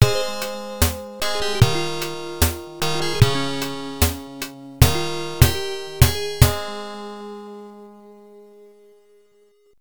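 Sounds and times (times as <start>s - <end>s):
game over FM jingle: 0.0s - 7.3s.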